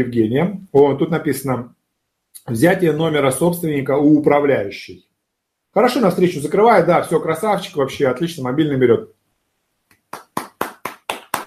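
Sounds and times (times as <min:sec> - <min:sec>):
speech: 0:00.0 - 0:01.8, 0:02.4 - 0:05.1, 0:05.8 - 0:09.2
hand claps: 0:09.9 - 0:11.4.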